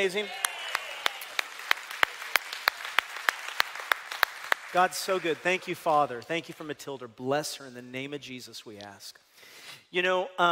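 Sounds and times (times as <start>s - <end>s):
speech: 0.0s - 0.5s, 4.7s - 10.5s
audience applauding: 0.0s - 6.0s
steady rhythmic clap pattern: 0.4s - 6.8s.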